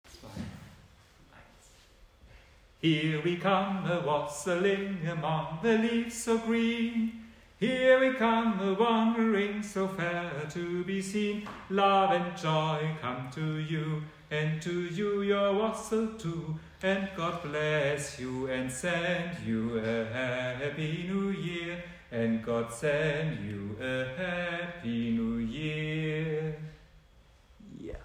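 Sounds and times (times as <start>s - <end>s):
bass: 2.7s - 28.0s.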